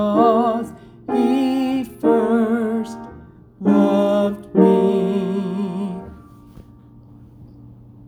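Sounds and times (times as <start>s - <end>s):
tenor singing a carol: 0.0s - 6.3s.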